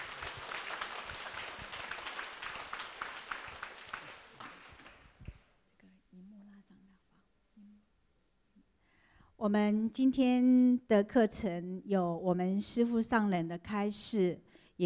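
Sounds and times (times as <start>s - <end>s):
audience clapping: 0.0s - 5.5s
speech: 9.4s - 14.8s.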